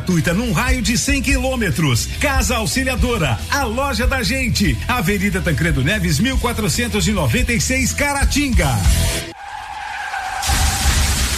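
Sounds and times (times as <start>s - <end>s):
speech: 0.1s - 9.2s
car tires skidding in an insurance advert: 9.3s - 11.3s.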